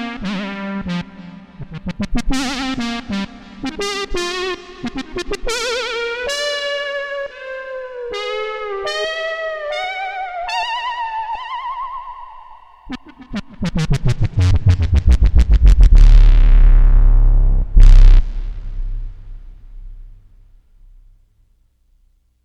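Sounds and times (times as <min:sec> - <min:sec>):
arpeggiated synth lead: 0:12.9 - 0:20.1.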